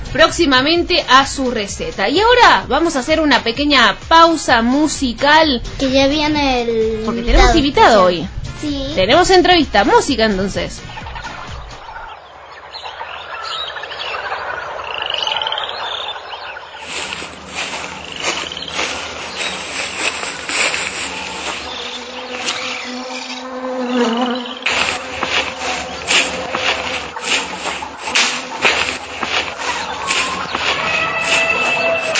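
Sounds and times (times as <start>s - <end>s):
speech: 0.1s - 10.9s
jungle frogs croaking: 10.8s - 32.1s
jungle insects buzzing and chirping: 10.8s - 32.1s.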